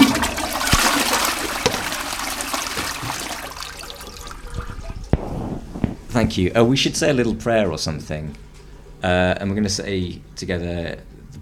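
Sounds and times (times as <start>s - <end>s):
toilet flushing: 0.0s - 5.2s
speech: 6.2s - 11.4s.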